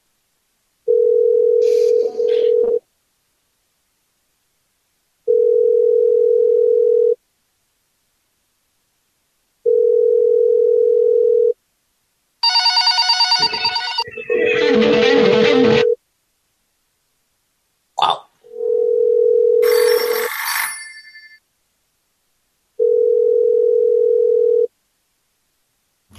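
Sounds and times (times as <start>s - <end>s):
telephone ringback tone while calling a bank: 0.9s - 2.8s, 5.3s - 7.2s, 9.7s - 11.6s, 12.4s - 16.0s, 18.5s - 21.4s, 22.8s - 24.7s
harsh burst of electronic noise: 13.5s - 16.0s.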